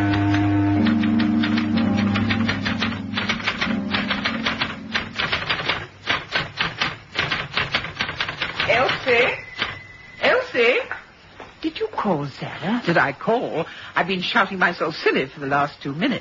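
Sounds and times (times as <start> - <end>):
typewriter typing: 0.0 - 9.9
speech: 12.1 - 16.1.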